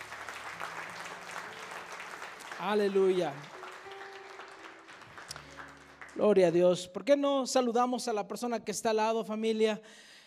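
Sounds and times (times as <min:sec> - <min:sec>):
audience applauding: 0:00.0 - 0:06.7
speech: 0:02.6 - 0:03.6, 0:06.2 - 0:10.1.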